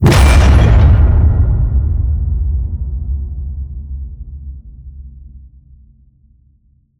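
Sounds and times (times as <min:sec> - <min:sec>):
cinematic metal crash hit: 0:00.0 - 0:02.1.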